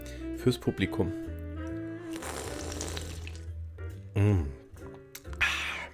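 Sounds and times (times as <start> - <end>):
speech: 0.4 - 1.3, 4.2 - 4.6
slurping a sip of iced drink: 2.0 - 3.5.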